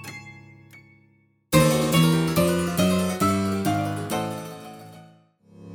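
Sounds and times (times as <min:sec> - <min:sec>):
gangster music riffs: 0:01.6 - 0:05.1.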